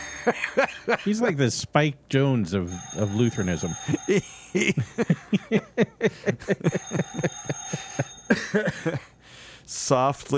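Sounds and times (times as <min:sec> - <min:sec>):
laughter: 0:00.0 - 0:01.4, 0:03.1 - 0:09.2
telephone ringing sound effect from soundboard: 0:00.0 - 0:01.4, 0:02.7 - 0:05.1, 0:06.6 - 0:08.9
speech: 0:00.2 - 0:09.1, 0:09.7 - 0:10.3.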